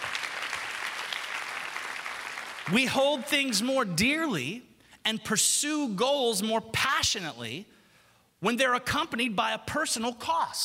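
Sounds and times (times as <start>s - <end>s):
audience clapping: 0.0s - 3.6s
speech: 2.7s - 7.8s, 8.4s - 10.6s.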